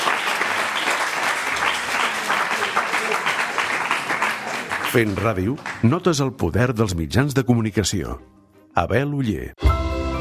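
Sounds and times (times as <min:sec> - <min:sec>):
audience applause: 0:00.0 - 0:06.2
speech: 0:04.9 - 0:09.6.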